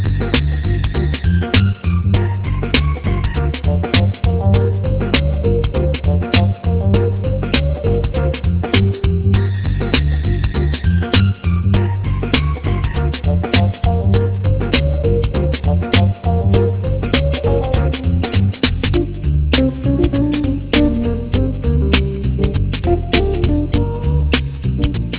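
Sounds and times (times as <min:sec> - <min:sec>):
jazz music: 0:00.0 - 0:25.1.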